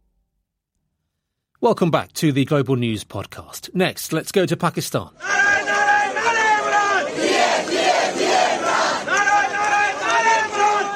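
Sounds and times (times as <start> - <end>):
speech: 1.6 - 5.8
protest crowd chanting outside election commission office in Karachi: 5.2 - 10.9.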